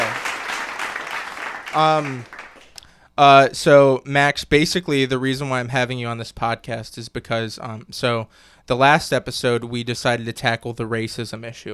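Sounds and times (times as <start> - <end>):
clap sound effect: 0.0 - 3.0
speech: 1.7 - 2.3, 3.2 - 11.7.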